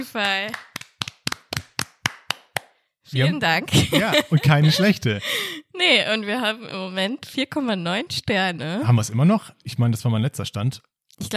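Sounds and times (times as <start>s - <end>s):
speech: 0.0s - 0.7s, 3.1s - 11.3s
hand clapping: 0.2s - 2.8s
laughter: 3.2s - 5.3s.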